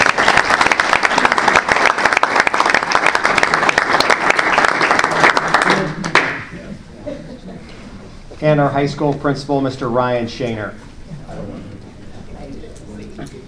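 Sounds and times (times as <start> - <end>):
round of applause: 0.0 - 6.5
speech: 8.4 - 10.8.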